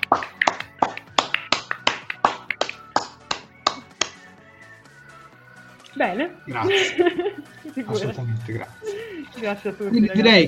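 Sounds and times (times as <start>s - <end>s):
applause: 0.0s - 4.1s
speech: 6.0s - 10.4s
laughter: 6.5s - 9.2s.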